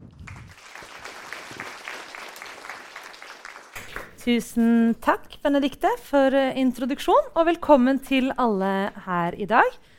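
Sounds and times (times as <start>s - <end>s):
audience clapping: 0.0s - 4.2s
speech: 4.2s - 9.9s.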